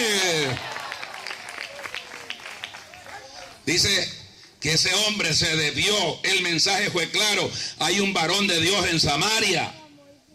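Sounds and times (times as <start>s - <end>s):
audience applause: 0.0s - 3.6s
speech: 3.7s - 9.8s.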